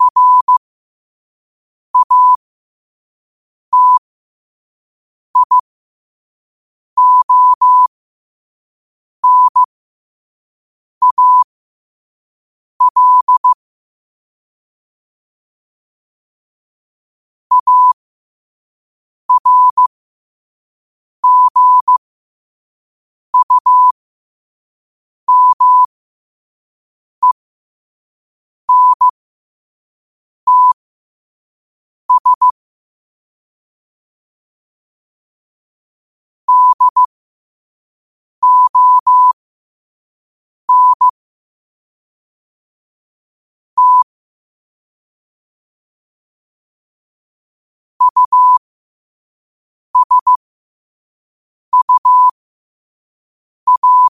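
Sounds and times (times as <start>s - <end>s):
morse code at 5 wpm: 0.0s - 0.6s, 2.0s - 2.4s, 3.7s - 4.0s, 5.4s - 5.6s, 7.0s - 7.9s, 9.2s - 9.7s, 11.0s - 11.5s, 12.8s - 13.6s, 17.5s - 18.0s, 19.3s - 19.9s, 21.2s - 22.0s, 23.4s - 24.0s, 25.3s - 25.9s, 28.7s - 29.2s, 30.5s - 30.8s, 32.1s - 32.6s, 36.5s - 37.1s, 38.4s - 39.4s, 40.7s - 41.1s, 43.8s - 44.1s, 48.0s - 48.6s, 50.0s - 50.4s, 51.7s - 52.4s, 53.7s - 54.1s.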